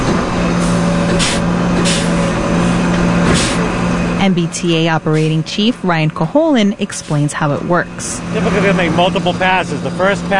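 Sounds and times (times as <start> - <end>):
ballast tamper engine drone: 0.0 - 10.3
ballast tamper pneumatic hissing bursts: 0.6 - 2.2, 3.3 - 3.7
speech: 4.2 - 10.3.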